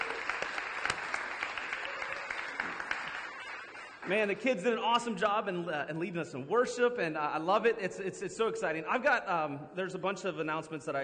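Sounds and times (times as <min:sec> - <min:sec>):
church congregation applauding to welcome people: 0:00.0 - 0:05.1
speech: 0:04.1 - 0:11.0.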